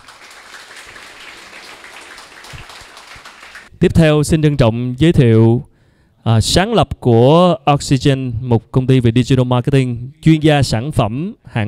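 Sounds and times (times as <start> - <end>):
crowd clapping: 0.0 - 3.7
speech: 3.8 - 11.6.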